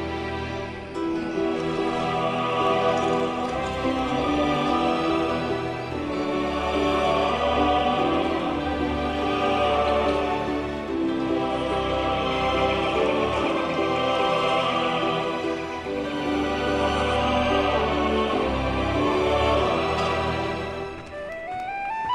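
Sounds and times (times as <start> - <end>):
tavern ambience: 0.2 - 22.1.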